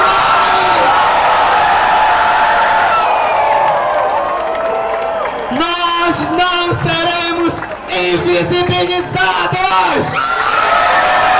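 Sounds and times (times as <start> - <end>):
high whoops and yells from pride march crowd in Porto: 0.0 - 6.8, 9.9 - 11.3
large crowd at an LGBT pride march in Porto shouting and cheering: 0.0 - 11.3.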